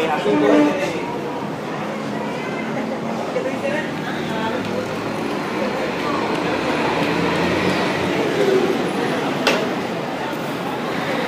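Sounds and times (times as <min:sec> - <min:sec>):
crowd murmur on a street in Centro Habana, Cuba: 0:00.0 - 0:11.2
passing traffic in Centro Habana, Cuba: 0:00.0 - 0:11.2.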